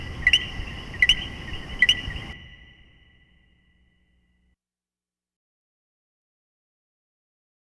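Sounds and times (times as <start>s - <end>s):
common coquí calling co-qui: 0.0s - 3.9s.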